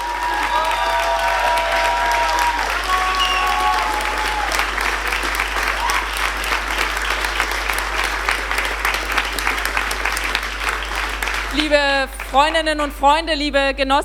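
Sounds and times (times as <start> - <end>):
cheering and whistles: 0.0 - 7.0
audience applause at election party: 0.0 - 12.7
speech: 12.3 - 14.0.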